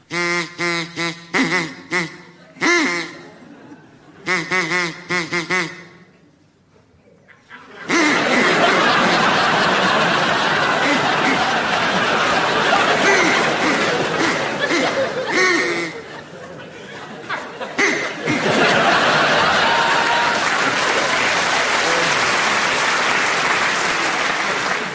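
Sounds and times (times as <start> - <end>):
nasal honking duck quacks: 0.1 - 3.4, 4.2 - 6.1, 7.9 - 9.0, 10.6 - 11.8, 12.7 - 16.2, 17.8 - 18.6
crowd laughing: 1.4 - 5.9, 7.3 - 24.9.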